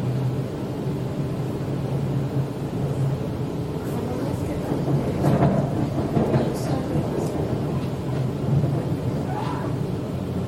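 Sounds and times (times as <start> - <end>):
Sydney train rolling toward the city: 0.0 - 10.4
constant hum: 0.0 - 10.4.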